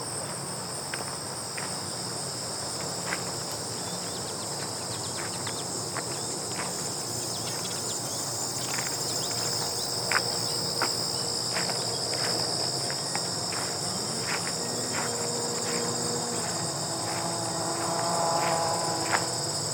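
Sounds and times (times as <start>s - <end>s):
grasshoppers chirping: 0.1s - 19.7s
walking on gravel on the Highland Trails: 4.6s - 7.8s, 8.7s - 19.7s.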